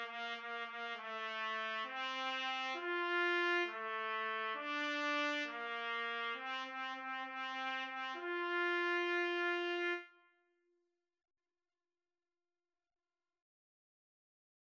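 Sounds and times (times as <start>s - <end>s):
trumpet duet: 0.0s - 10.4s.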